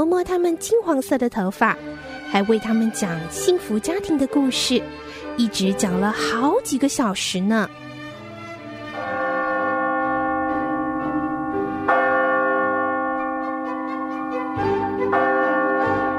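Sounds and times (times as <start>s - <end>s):
speech: 0.0s - 7.9s
clock chiming with deep resonant bell strokes: 2.3s - 4.8s, 8.9s - 16.1s.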